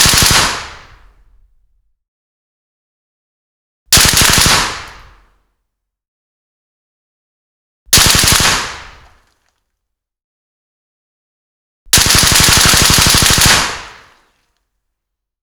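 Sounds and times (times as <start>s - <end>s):
5.56mm machine gun firing bursts: 0.0s - 0.4s, 4.0s - 4.6s, 8.0s - 8.7s, 11.9s - 14.0s.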